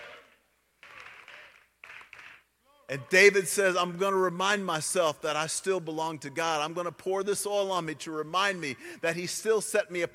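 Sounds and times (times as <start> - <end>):
people clapping: 0.0 - 2.5
speech: 2.9 - 10.1.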